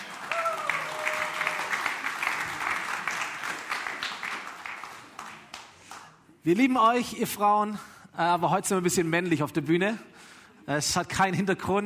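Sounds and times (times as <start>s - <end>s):
audience applause: 0.0s - 6.0s
speech: 6.4s - 11.8s.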